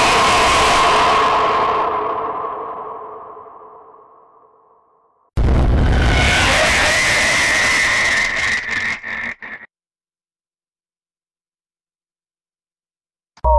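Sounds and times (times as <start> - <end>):
scary and eerie ghost sound effects: 0.0 - 4.8, 5.4 - 9.7.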